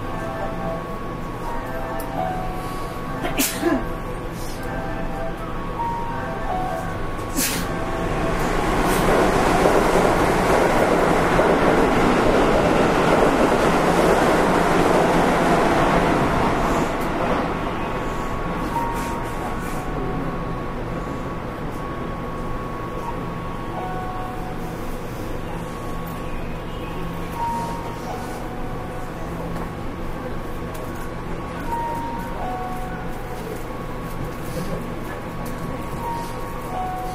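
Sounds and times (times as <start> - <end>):
Keihan 5000 series train running on a semi-express: 0.0 - 37.1.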